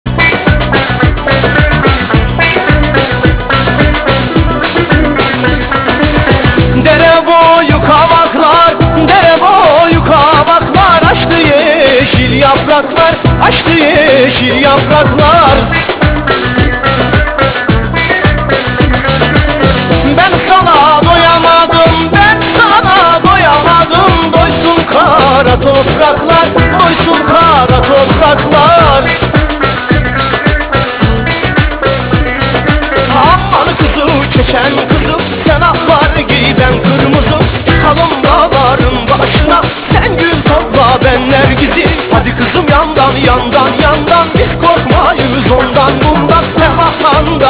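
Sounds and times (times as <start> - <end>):
music: 0.0 - 47.4.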